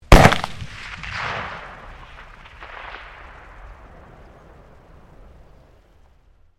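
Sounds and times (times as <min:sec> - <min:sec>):
MAG-1 rifle firing: 0:00.1 - 0:01.8.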